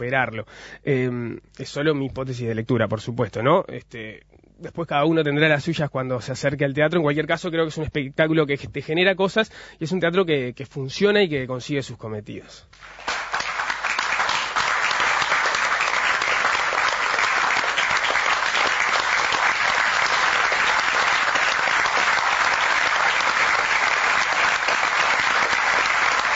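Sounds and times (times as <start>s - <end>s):
speech: 0.0s - 13.2s
theatre audience applause: 12.8s - 26.3s.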